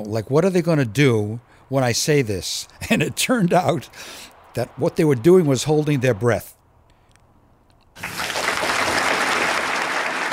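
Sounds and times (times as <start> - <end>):
speech: 0.0 - 6.6
audience applause: 8.0 - 10.3.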